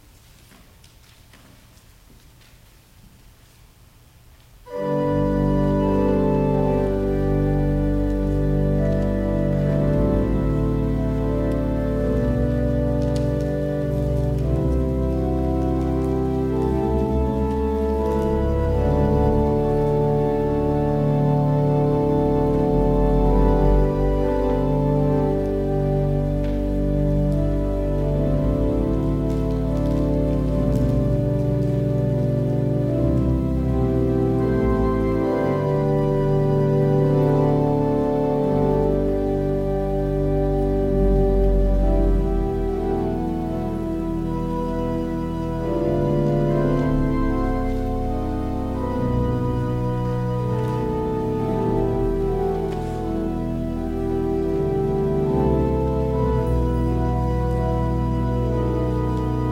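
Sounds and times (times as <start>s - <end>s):
organ music: 4.6s - 59.5s.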